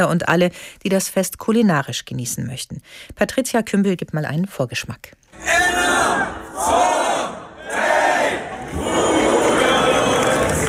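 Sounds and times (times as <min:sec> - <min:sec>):
speech: 0:00.0 - 0:07.3
festival crowd shouting and cheering: 0:05.4 - 0:10.6.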